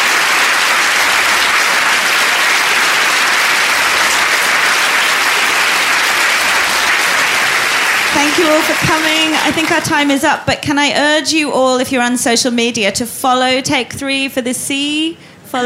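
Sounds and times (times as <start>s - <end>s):
audience applause: 0.0s - 10.3s
speech: 8.2s - 15.6s.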